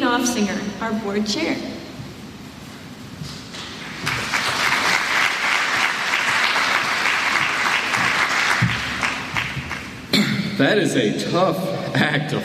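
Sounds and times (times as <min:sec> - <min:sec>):
speech: 0:00.2 - 0:01.8, 0:10.6 - 0:12.4
audience applause: 0:03.6 - 0:10.1.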